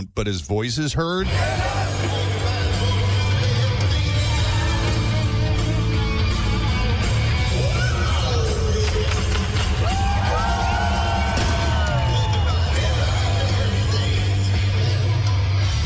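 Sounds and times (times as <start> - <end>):
speech: 0.0 - 2.4
live concert crowd: 1.2 - 15.8.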